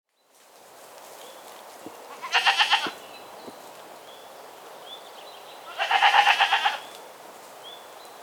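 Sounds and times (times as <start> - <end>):
goat bleating: 2.1 - 3.0, 5.7 - 6.9.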